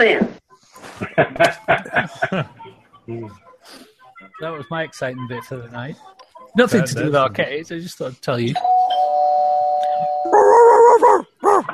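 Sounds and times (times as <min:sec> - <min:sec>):
speech: 0:00.0 - 0:00.3, 0:01.2 - 0:03.8, 0:04.4 - 0:09.0
laughter: 0:00.8 - 0:02.8
coyote howling: 0:10.3 - 0:11.7.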